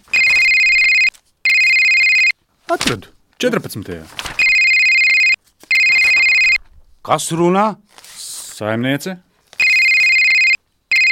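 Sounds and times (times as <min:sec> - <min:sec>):
telephone ringing: 0:00.1 - 0:02.4, 0:04.4 - 0:06.6, 0:09.6 - 0:11.1
speech: 0:02.7 - 0:04.4, 0:07.1 - 0:08.0, 0:08.6 - 0:09.3.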